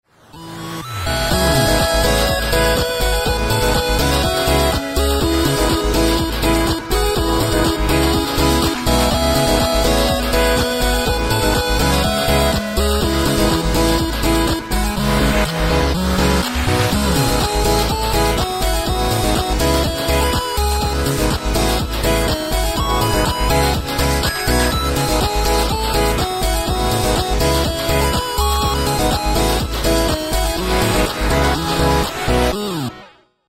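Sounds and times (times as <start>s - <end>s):
8-bit music: 0.3s - 33.0s.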